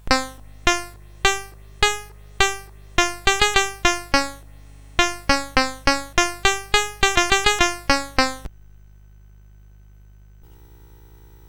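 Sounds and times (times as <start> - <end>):
Japanese koto on SID chip CSG8580R5: 0.0 - 4.4, 5.0 - 8.5.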